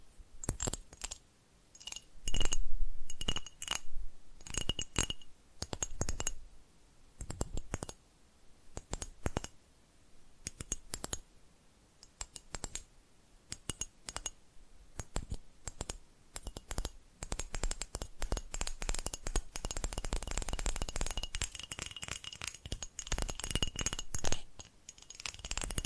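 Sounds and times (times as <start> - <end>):
quick sharp glassy clicks and taps: 1.8 - 3.8, 4.4 - 6.4, 7.2 - 8.0, 8.8 - 9.6, 10.5 - 11.2, 13.5 - 14.4, 15.0 - 25.8.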